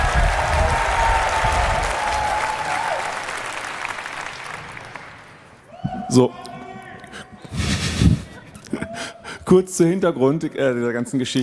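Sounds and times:
audience applause: 0.0 - 5.5
speech: 6.1 - 6.5, 9.5 - 11.4.

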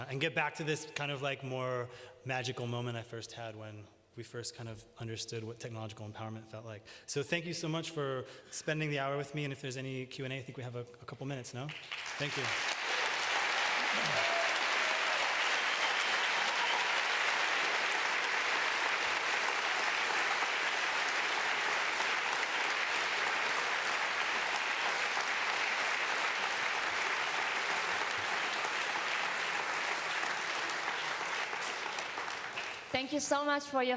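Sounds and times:
speech: 0.0 - 12.8, 33.2 - 33.9
audience applause after a talk: 11.7 - 32.9.

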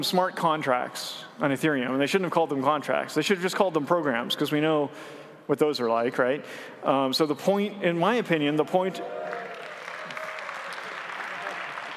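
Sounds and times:
speech: 0.0 - 9.4
enthusiastic crowd applause: 9.2 - 11.9.

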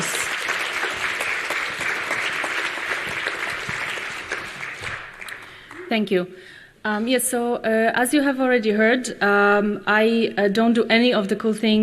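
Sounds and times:
audience applause: 0.0 - 5.9
speech: 5.9 - 11.8.

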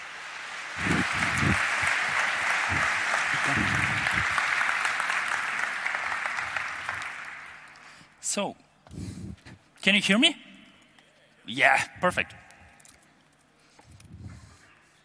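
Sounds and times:
crowd applause: 0.0 - 8.0
speech: 8.4 - 9.0, 9.8 - 10.4, 11.5 - 12.4.

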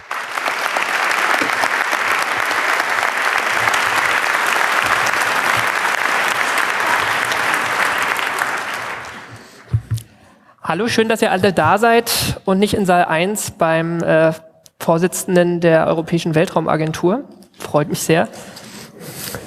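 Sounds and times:
audience applause: 0.0 - 9.8
speech: 10.7 - 18.6.

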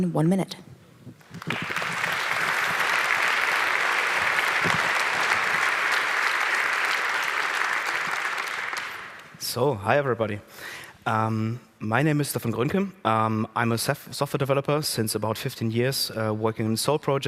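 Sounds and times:
speech: 0.0 - 0.7, 9.5 - 17.2
audience applause: 1.2 - 9.4.

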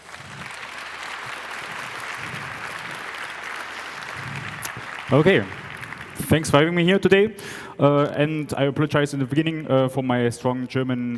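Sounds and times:
audience applause: 0.0 - 8.1
speech: 5.1 - 5.6, 6.2 - 11.1.

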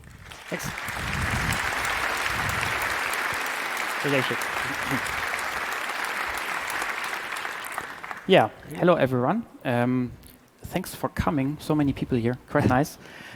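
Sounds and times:
warm audience applause: 0.0 - 8.5
speech: 0.5 - 1.1, 4.0 - 5.2, 8.3 - 13.3.

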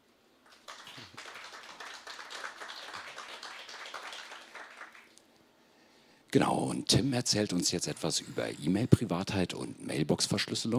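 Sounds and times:
audience applause: 0.4 - 5.2
speech: 6.3 - 10.7.

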